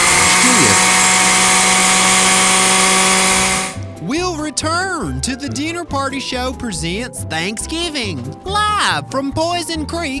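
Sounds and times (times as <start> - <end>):
kitchen blender running: 0.0 - 3.8
speech: 5.2 - 10.1.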